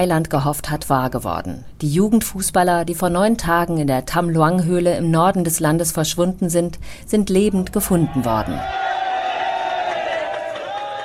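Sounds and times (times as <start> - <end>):
speech: 0.0 - 8.8
crowd in Thailand cheering as cave rescue boys are found alive: 8.0 - 11.0.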